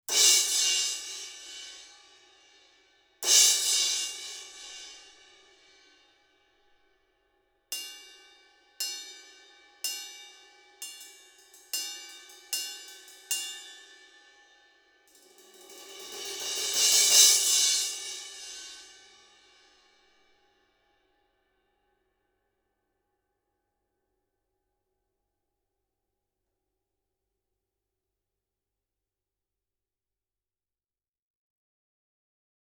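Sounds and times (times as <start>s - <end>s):
crash cymbal: 0.1s - 5.9s, 7.8s - 20.0s.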